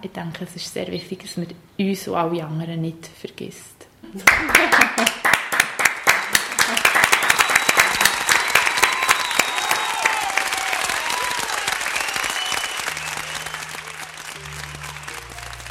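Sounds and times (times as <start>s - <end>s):
speech: 0.0s - 5.2s
laughter: 4.2s - 5.2s, 6.5s - 7.3s
group applause: 4.2s - 15.6s
faint whistles and cheers: 7.0s - 15.6s.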